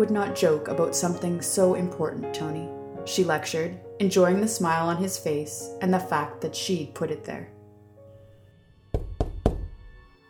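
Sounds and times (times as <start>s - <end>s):
speech: 0.0s - 7.6s
knocking on a door: 8.9s - 9.8s.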